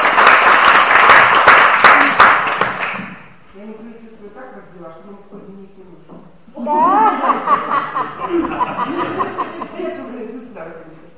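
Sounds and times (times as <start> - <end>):
group clapping: 0.0 - 3.4
laughter: 6.6 - 10.2.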